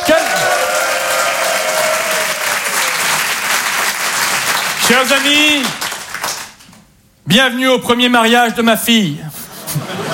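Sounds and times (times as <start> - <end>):
audience applause: 0.0 - 6.8
speech: 4.9 - 5.8, 7.3 - 9.8
laughter: 9.4 - 10.1.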